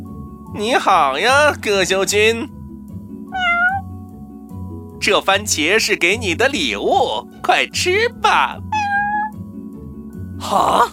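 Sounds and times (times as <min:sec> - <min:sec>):
speech: 0:00.5 - 0:02.6, 0:05.0 - 0:08.6, 0:10.4 - 0:10.9
cat meowing: 0:03.3 - 0:03.9, 0:08.7 - 0:09.4.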